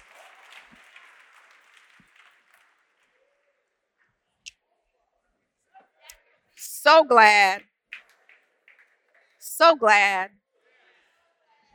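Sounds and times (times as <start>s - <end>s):
audience hand clapping in praise: 0.0s - 3.2s, 6.9s - 10.3s
speech: 6.9s - 7.7s, 9.6s - 10.4s.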